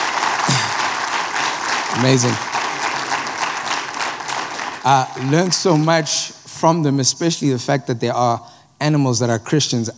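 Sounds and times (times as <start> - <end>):
audience applause: 0.0 - 6.5
speech: 2.0 - 2.5, 4.8 - 9.9.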